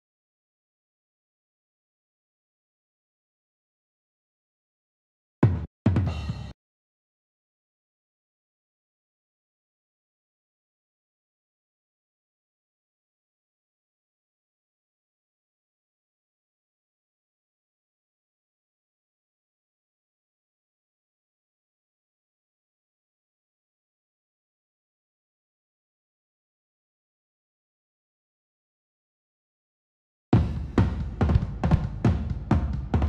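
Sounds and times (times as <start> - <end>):
drums: 5.4 - 6.6, 30.4 - 33.0.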